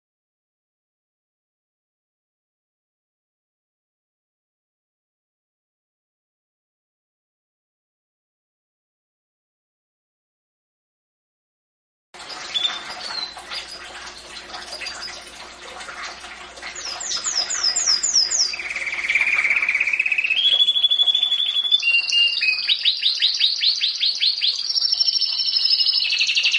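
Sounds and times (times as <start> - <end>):
domestic canary song: 12.2 - 15.4, 16.6 - 26.5.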